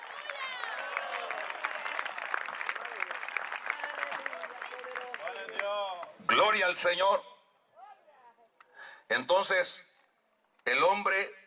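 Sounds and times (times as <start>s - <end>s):
audience applause: 0.0s - 6.1s
people cheering: 0.0s - 6.1s
speech: 6.4s - 7.3s, 9.1s - 9.9s, 10.6s - 11.4s.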